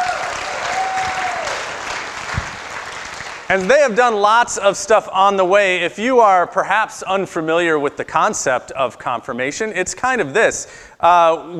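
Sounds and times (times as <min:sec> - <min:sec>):
audience clapping: 0:00.0 - 0:04.1
speech: 0:03.5 - 0:11.5.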